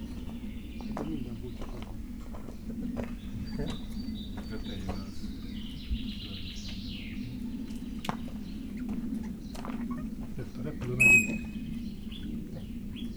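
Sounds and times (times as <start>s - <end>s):
people: 0.2s - 8.3s, 9.0s - 13.1s
whistle: 11.0s - 11.5s
parrot: 11.0s - 11.6s.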